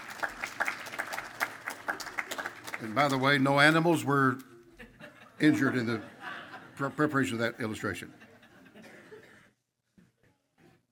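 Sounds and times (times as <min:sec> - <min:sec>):
audience applause: 0:00.0 - 0:03.9
speech: 0:02.8 - 0:04.5, 0:05.4 - 0:06.1, 0:06.8 - 0:08.2
laughter: 0:04.7 - 0:09.5.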